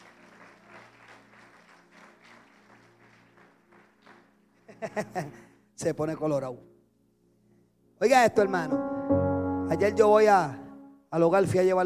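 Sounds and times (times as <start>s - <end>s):
crowd applauding: 0.0s - 5.0s
speech: 4.8s - 6.7s, 8.0s - 11.8s.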